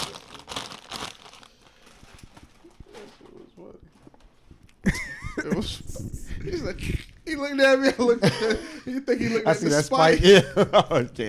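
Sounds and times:
bag being opened, crinkling: 0.0 - 3.3
laughter: 4.8 - 6.8, 7.6 - 11.2
speech: 5.4 - 11.2.

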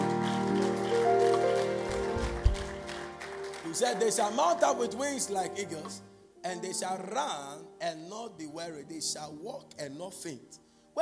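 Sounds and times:
audience clapping: 0.0 - 5.3
speech: 3.8 - 10.9.

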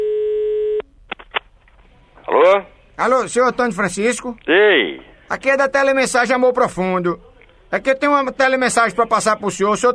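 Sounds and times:
telephone line tone while placing a prank call: 0.0 - 0.8
speech: 2.5 - 9.9.

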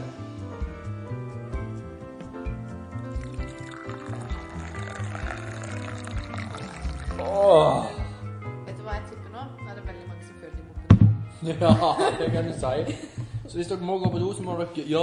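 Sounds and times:
coffee poured from an old-fashioned white jug with red top into a cup: 3.1 - 8.0
speech: 7.2 - 8.0, 11.4 - 15.0
laughter: 11.5 - 13.4.

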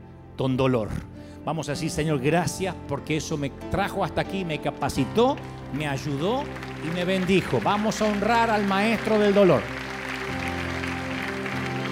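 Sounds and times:
speech: 0.4 - 9.8
audience applause: 5.3 - 11.8.

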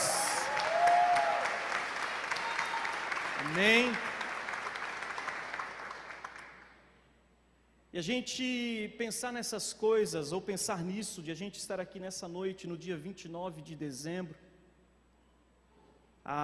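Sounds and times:
audience applauding for a band: 0.0 - 6.7
speech: 3.4 - 4.1, 7.9 - 14.4, 16.2 - 16.4.

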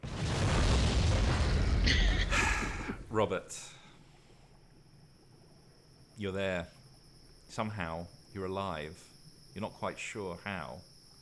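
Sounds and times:
bomb explosion: 0.0 - 3.2
speech: 3.1 - 3.8, 6.2 - 6.8, 7.5 - 10.9.

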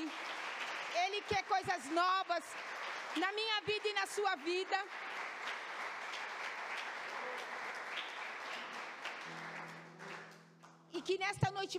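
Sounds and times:
audience applause: 0.0 - 10.5
speech: 1.2 - 5.1, 11.0 - 11.7.

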